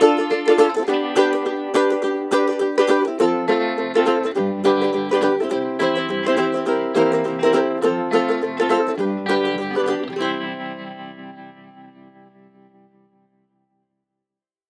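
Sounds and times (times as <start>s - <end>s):
happy Hawaiian ukulele music: 0.0s - 11.8s.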